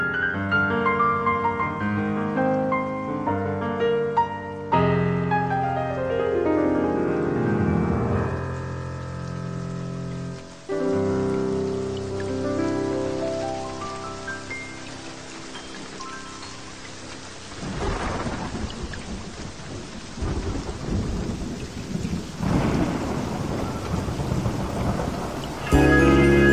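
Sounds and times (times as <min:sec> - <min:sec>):
smooth jazz with sustained layered chords: 0:00.0 - 0:17.4, 0:25.6 - 0:26.5
heavy rain: 0:00.0 - 0:26.5.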